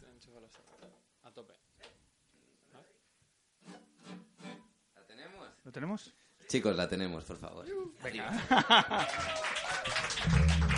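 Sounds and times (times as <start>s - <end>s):
speech: 0.5s - 1.9s, 5.7s - 10.7s
laughter: 8.3s - 10.7s
crowd clapping: 8.8s - 10.7s.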